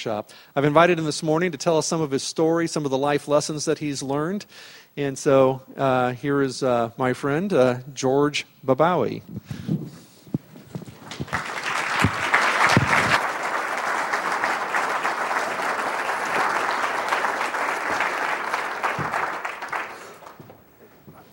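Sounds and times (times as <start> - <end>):
speech: 0.0 - 9.9
audience applause: 11.0 - 20.6.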